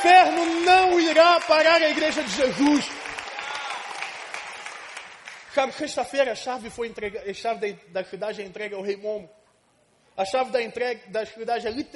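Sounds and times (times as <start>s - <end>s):
speech: 0.0s - 3.1s, 5.5s - 9.4s, 10.2s - 11.9s
audience applauding: 0.0s - 5.6s.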